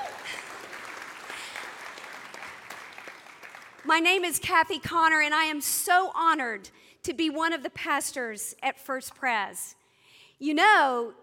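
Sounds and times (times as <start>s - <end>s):
audience applause: 0.0s - 3.9s
speech: 3.9s - 9.8s, 10.4s - 11.2s.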